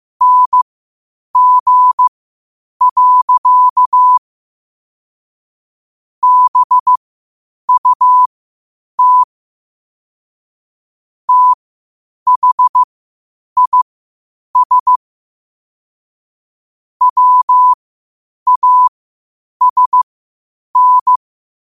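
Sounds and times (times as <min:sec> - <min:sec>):
morse code at 5 wpm: 0:00.2 - 0:00.6, 0:01.4 - 0:02.1, 0:02.8 - 0:04.2, 0:06.2 - 0:07.0, 0:07.7 - 0:08.3, 0:09.0 - 0:09.3, 0:11.3 - 0:11.6, 0:12.3 - 0:12.9, 0:13.6 - 0:13.8, 0:14.6 - 0:15.0, 0:17.0 - 0:17.8, 0:18.5 - 0:18.9, 0:19.6 - 0:20.1, 0:20.8 - 0:21.2.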